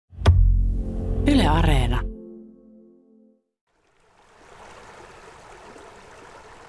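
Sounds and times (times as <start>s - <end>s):
music: 0.2s - 3.5s
speech: 1.2s - 2.1s
small brook flowing through summer countryside at Pudasjärvi, Finland: 3.7s - 6.6s.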